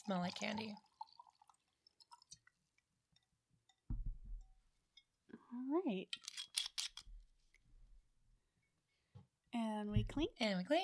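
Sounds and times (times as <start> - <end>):
speech: 0.0 - 0.9, 5.5 - 6.3, 9.5 - 10.8
drink pouring into a glass: 0.0 - 2.8.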